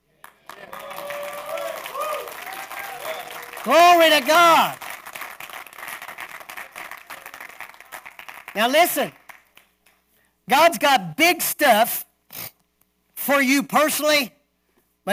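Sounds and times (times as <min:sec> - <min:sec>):
audience clapping: 0:00.0 - 0:10.1
speech: 0:03.6 - 0:04.8, 0:08.6 - 0:09.2, 0:10.5 - 0:12.1, 0:13.3 - 0:14.4.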